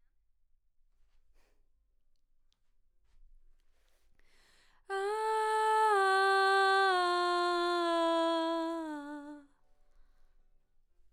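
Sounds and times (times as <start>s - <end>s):
background vocals: 4.9s - 9.5s.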